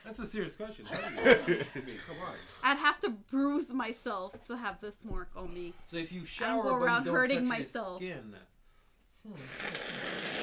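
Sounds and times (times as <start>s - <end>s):
speech: 0.1s - 8.5s, 9.2s - 10.3s
laughter: 0.9s - 2.3s
woman blowing her nose: 9.3s - 10.4s.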